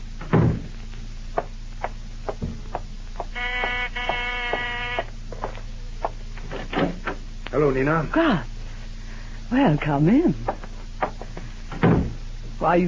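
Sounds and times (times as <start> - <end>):
steady hum: 0.0 - 12.8
low thump: 2.3 - 2.9
door creaking open to let visitor in: 3.3 - 5.1
speech: 7.6 - 8.5, 9.5 - 10.6, 12.6 - 12.8.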